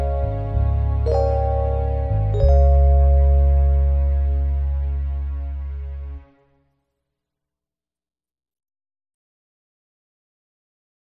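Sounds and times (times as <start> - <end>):
instrumental music: 0.0 - 6.7.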